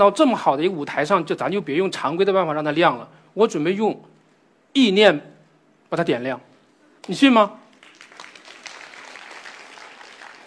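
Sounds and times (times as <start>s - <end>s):
speech: 0.0s - 4.1s, 4.7s - 5.3s, 5.9s - 7.6s
audience applause: 7.8s - 10.4s.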